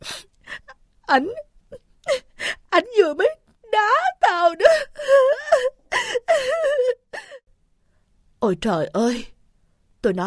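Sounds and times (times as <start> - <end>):
woman sobbing: 0.0 - 2.8, 3.8 - 7.4
speech: 1.1 - 1.5, 3.0 - 3.3, 8.5 - 9.3, 10.0 - 10.2.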